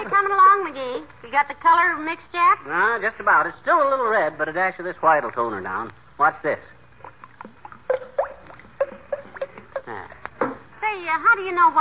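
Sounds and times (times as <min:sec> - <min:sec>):
speech: 0:00.1 - 0:06.8, 0:11.0 - 0:11.8
thick paint pouring and glugging: 0:07.0 - 0:09.9.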